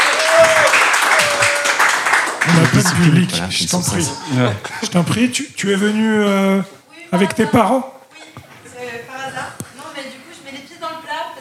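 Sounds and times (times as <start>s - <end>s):
audience applause: 0.0s - 4.1s
laughter: 2.4s - 7.7s
speech: 2.6s - 8.0s.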